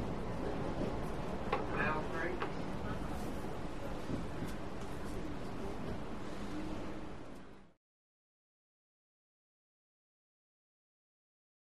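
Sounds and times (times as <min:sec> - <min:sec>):
modern subway train interior: 0:00.0 - 0:07.8.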